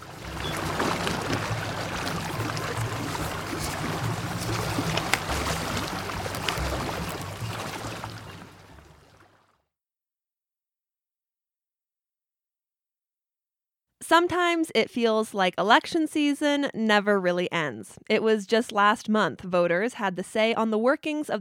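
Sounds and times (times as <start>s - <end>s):
San Miguel River water rushing: 0.0s - 9.4s
speech: 14.1s - 21.3s.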